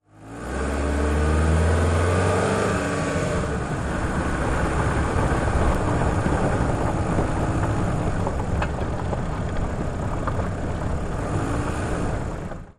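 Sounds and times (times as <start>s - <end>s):
sedan driving on pavement and gravel at medium speed: 0.2s - 12.7s.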